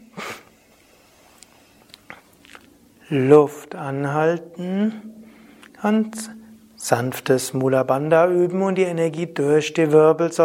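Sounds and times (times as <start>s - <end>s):
sharp nasal inhale through the left nostril during yoga breathing: 0.1s - 1.8s
speech: 3.1s - 5.2s, 5.8s - 10.4s.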